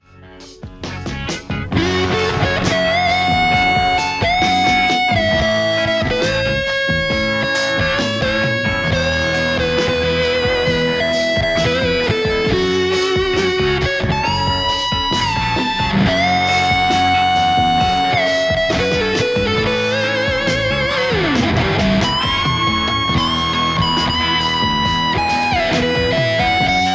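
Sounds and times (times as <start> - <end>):
Stratocaster electric guitar: 0.0 - 26.9.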